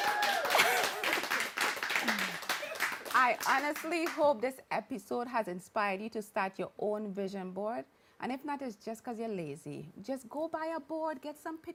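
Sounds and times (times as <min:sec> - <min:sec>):
hand clapping: 0:00.0 - 0:04.2
speech: 0:03.2 - 0:11.7.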